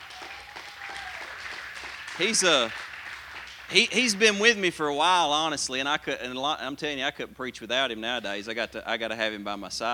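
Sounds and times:
audience hand clapping: 0.0 - 5.2
speech: 2.2 - 2.8, 3.7 - 9.9.

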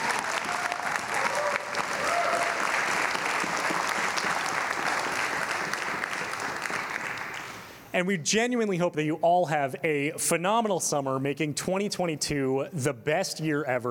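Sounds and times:
audience applause: 0.0 - 7.8
speech: 8.0 - 13.9.

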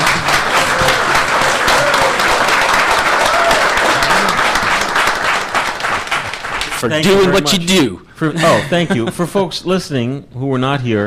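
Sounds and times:
applause: 0.0 - 7.3
speech: 6.8 - 11.0
laughter: 8.4 - 9.4.

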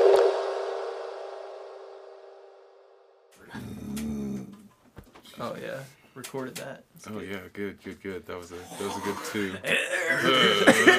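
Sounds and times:
burp: 3.4 - 4.7, 9.6 - 10.7
speech: 5.4 - 10.9
laughter: 8.7 - 10.9.

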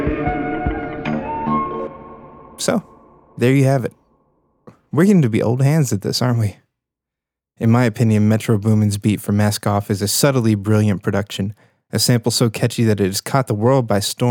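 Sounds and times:
flute melody with long reverb: 0.1 - 2.6
speech: 3.4 - 4.0, 4.9 - 6.6, 7.6 - 14.2.

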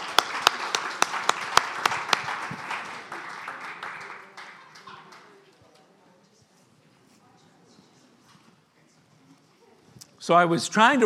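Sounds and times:
audience clapping: 0.0 - 5.4
speech: 10.3 - 11.0.

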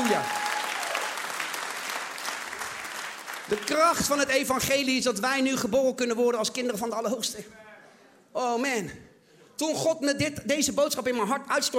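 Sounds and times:
church congregation clapping during a sermon: 0.0 - 4.8
speech: 0.1 - 0.4, 3.5 - 7.7, 8.4 - 11.7.

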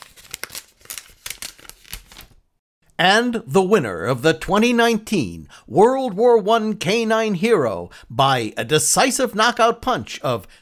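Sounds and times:
envelope being opened: 0.0 - 2.4
speech: 3.0 - 10.6.

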